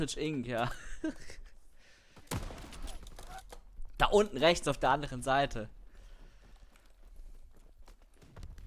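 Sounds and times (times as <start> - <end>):
speech: 0.0 - 1.4, 4.0 - 5.8
sniper rifle shot in an online shooter video game: 2.3 - 3.5.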